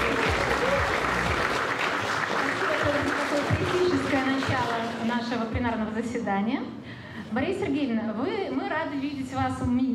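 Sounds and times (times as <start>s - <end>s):
audience applause: 0.0s - 5.1s
speech: 6.0s - 9.9s.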